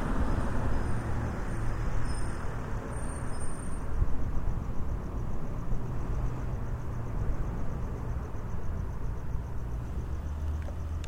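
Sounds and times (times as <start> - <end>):
light city traffic at Lexington and Seward: 0.0 - 11.0.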